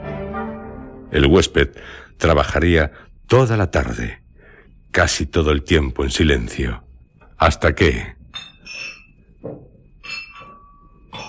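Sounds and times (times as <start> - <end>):
speech: 1.1 - 4.2, 5.0 - 6.8, 7.4 - 8.8
glass bottles clinking together: 8.2 - 9.4, 10.0 - 11.2.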